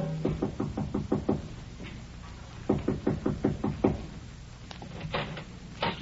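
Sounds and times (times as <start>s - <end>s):
knocking on a door: 0.2s - 1.5s, 2.7s - 4.1s.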